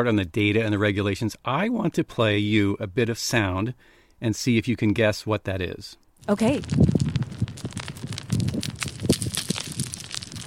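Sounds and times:
speech: 0:00.0 - 0:07.0
small rocks tumbling and sliding down a bluff: 0:06.2 - 0:10.4.

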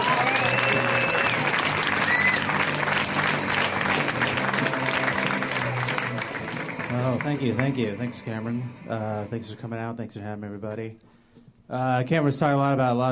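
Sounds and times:
whoops and cheers: 0:00.0 - 0:03.5
audience applause for comedian taking stage: 0:00.0 - 0:08.1
speech: 0:07.4 - 0:11.1, 0:11.7 - 0:13.1.

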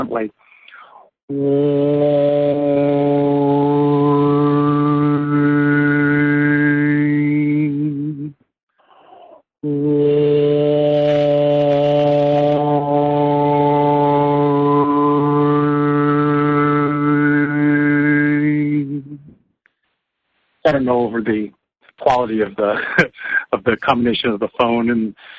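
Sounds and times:
speech: 0:00.0 - 0:00.4, 0:01.3 - 0:02.9, 0:20.8 - 0:25.3
overtone singing gliding between vowels: 0:01.3 - 0:08.3, 0:09.6 - 0:19.3.

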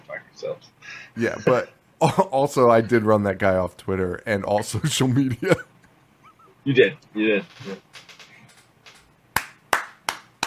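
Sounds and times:
speech: 0:00.4 - 0:05.7, 0:06.6 - 0:08.1
audience clapping: 0:09.3 - 0:10.4.

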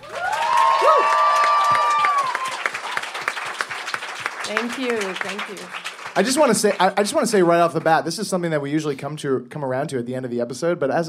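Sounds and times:
audience applause and cheering: 0:00.0 - 0:08.4
speech: 0:04.5 - 0:11.0.

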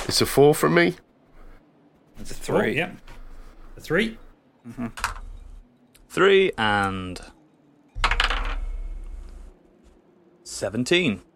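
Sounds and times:
speech: 0:00.1 - 0:01.1, 0:02.2 - 0:03.2, 0:03.8 - 0:05.2, 0:06.1 - 0:07.4, 0:10.5 - 0:11.3
dice being rolled: 0:05.0 - 0:05.2, 0:08.0 - 0:09.4.

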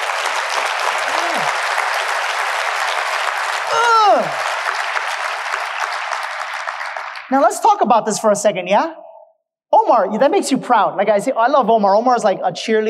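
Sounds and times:
audience applause: 0:00.0 - 0:07.3
speech: 0:07.3 - 0:09.1, 0:09.8 - 0:12.8.

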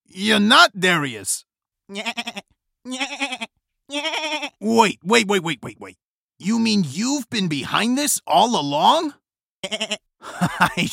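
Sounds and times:
speech: 0:00.2 - 0:10.9
goat bleating: 0:01.9 - 0:04.6, 0:09.6 - 0:10.1
laughter: 0:10.2 - 0:10.9.

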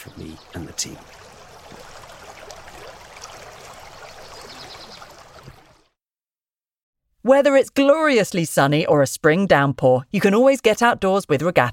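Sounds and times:
flowing stream water rushing and burbling: 0:00.0 - 0:05.9
speech: 0:00.1 - 0:01.8, 0:07.3 - 0:11.7.

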